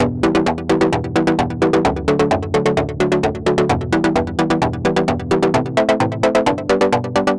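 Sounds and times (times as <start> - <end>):
galloping disco music: 0.0 - 7.3.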